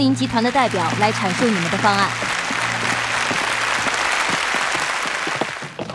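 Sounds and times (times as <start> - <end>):
audience applause: 0.1 - 5.8.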